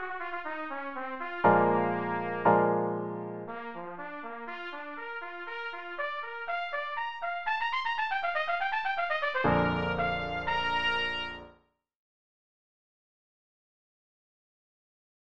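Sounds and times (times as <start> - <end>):
trumpet cadenza: 0.0 - 11.5.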